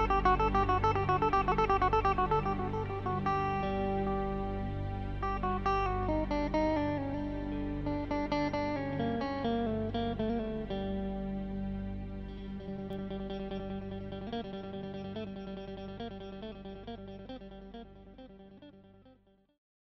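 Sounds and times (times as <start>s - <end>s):
oriental guitar: 0.0s - 19.3s.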